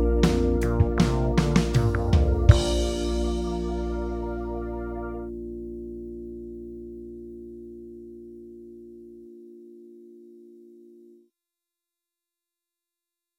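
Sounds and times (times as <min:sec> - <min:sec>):
brass slurs in E flat: 0:00.0 - 0:05.3.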